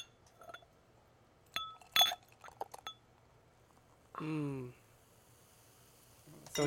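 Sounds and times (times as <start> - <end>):
glass clinking as a drink is poured: 0.0 - 0.8, 1.5 - 3.1, 6.4 - 6.6
speech: 4.2 - 4.8.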